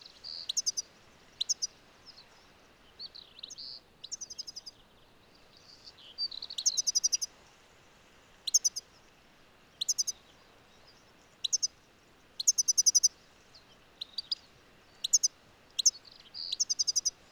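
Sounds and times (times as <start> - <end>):
European goldfinch Carduelis carduelis twittering and buzzy trills: 0.3 - 0.8, 1.4 - 1.7, 6.4 - 7.3, 8.5 - 8.8, 9.8 - 10.2, 11.4 - 11.7, 12.4 - 13.1, 14.0 - 17.2.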